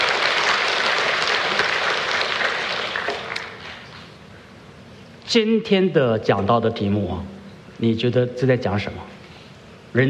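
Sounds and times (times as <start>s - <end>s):
audience applause: 0.0s - 3.9s
speech: 5.3s - 9.2s.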